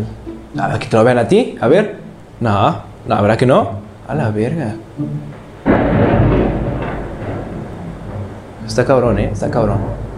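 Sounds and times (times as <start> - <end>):
speech: 0.0 - 5.4, 8.7 - 10.0
rain hissing: 0.0 - 10.1
thunder crack and rumble: 4.3 - 10.1.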